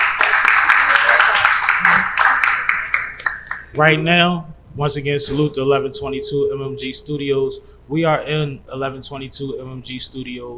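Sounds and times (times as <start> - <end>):
audience applause in the room: 0.0 - 3.6
speech: 3.8 - 10.5.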